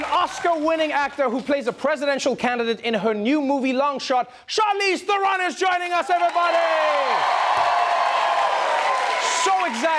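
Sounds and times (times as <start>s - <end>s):
studio audience clapping and cheering: 0.0s - 2.8s, 5.3s - 9.9s
speech: 0.2s - 7.7s, 9.6s - 9.9s
whoops: 6.4s - 9.9s.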